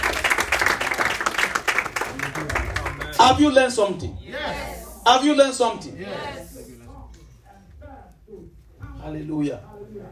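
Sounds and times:
church congregation clapping during a service: 0.0 - 3.7
speech: 3.3 - 6.8, 9.0 - 10.0.

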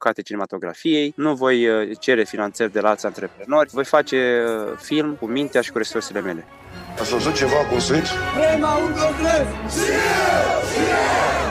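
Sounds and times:
speech: 0.0 - 11.4
crowd shouting and cheering: 9.4 - 11.4.

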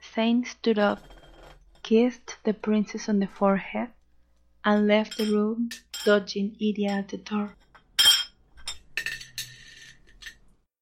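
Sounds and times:
speech: 0.2 - 1.2, 1.9 - 4.0, 4.6 - 7.6
dishes and glassware clinking: 4.7 - 6.2, 7.6 - 10.5.

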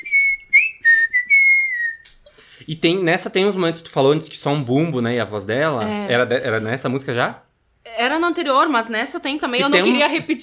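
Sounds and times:
person whistling a bird-like tune: 0.0 - 2.2
speech: 2.7 - 10.4.

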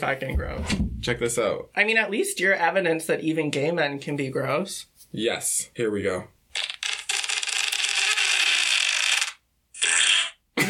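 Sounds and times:
speech: 0.0 - 6.4
fart sounds recording: 6.5 - 10.6.

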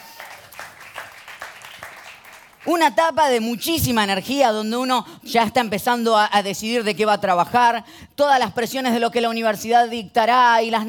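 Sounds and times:
audience applause: 0.0 - 2.6
speech: 2.6 - 10.8.

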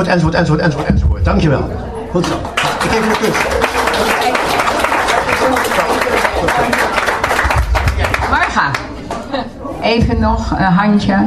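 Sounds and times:
speech: 0.0 - 3.8, 6.4 - 6.9, 9.4 - 11.2
audience applause for a first prize winner at a reading prize ceremony: 2.2 - 9.0.

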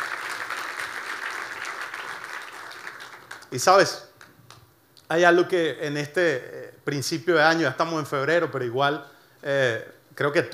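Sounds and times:
audience applauding: 0.0 - 4.7
speech: 3.5 - 4.1, 5.1 - 10.5.

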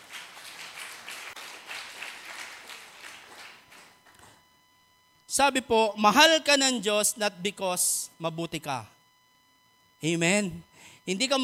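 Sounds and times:
church congregation clapping during a sermon: 0.0 - 4.4
speech: 5.4 - 9.0, 10.0 - 11.4.

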